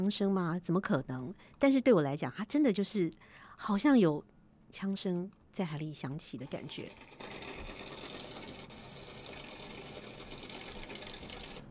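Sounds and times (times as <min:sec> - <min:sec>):
speech: 0:00.0 - 0:07.5
boat propeller turning underwater: 0:06.5 - 0:11.7.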